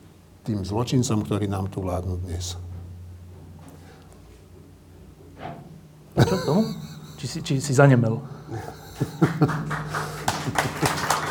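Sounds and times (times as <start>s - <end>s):
speech: 0.4s - 2.7s, 6.3s - 10.9s
laughter: 6.2s - 11.2s
audience clapping: 8.5s - 11.2s.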